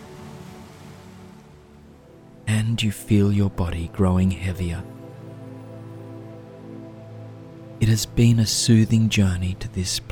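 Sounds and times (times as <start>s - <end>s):
ocean waves washing over sand on a tropical shore: 0.0s - 2.2s
speech: 2.6s - 5.0s, 7.8s - 10.0s.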